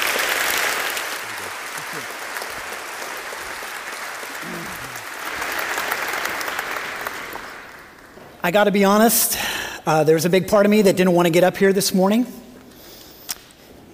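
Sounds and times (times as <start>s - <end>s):
audience applause welcoming a speaker at an Easter church service: 0.0s - 8.4s
speech: 8.4s - 12.4s.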